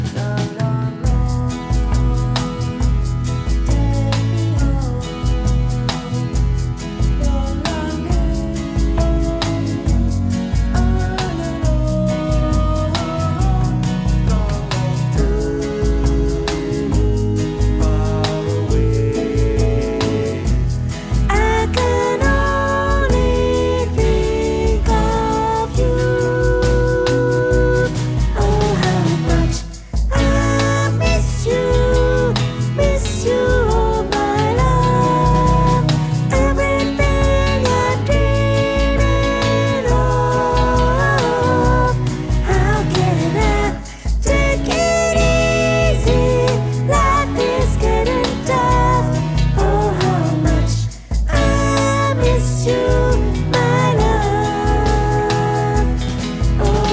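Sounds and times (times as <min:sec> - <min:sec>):
soprano voice: 0:00.1 - 0:56.9.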